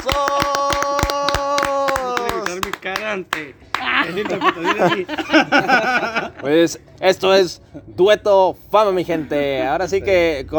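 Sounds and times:
audience clapping: 0.0 - 4.2
speech: 2.9 - 10.5
laughter: 3.8 - 6.8.

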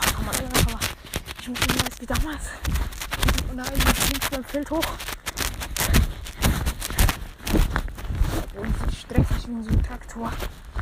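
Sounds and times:
constant rustle: 0.0 - 10.8
footsteps while walking outdoors: 0.0 - 10.8
speech: 1.5 - 5.2, 8.6 - 10.6.

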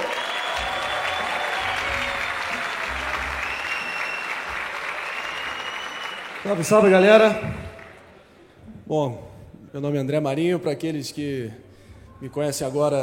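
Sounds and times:
audience applause: 0.0 - 8.2
speech: 6.4 - 7.6, 8.9 - 11.6, 12.2 - 13.0.

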